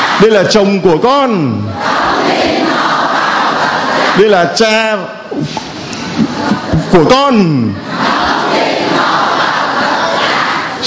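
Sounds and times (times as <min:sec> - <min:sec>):
crowd shouting: 0:00.0 - 0:00.4, 0:01.7 - 0:04.4, 0:07.7 - 0:10.8
speech: 0:00.2 - 0:02.6, 0:04.2 - 0:09.2.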